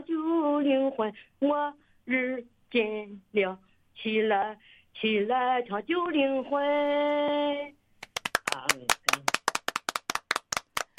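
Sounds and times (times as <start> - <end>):
speech: 0.6 - 7.8, 8.5 - 9.0
applause: 8.0 - 10.9.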